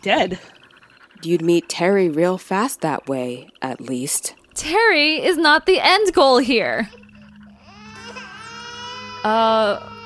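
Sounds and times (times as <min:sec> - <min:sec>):
speech: 0:00.0 - 0:00.6, 0:01.2 - 0:07.0, 0:09.2 - 0:10.0
Aoi Salt creature mimicking a crying baby: 0:06.9 - 0:10.0.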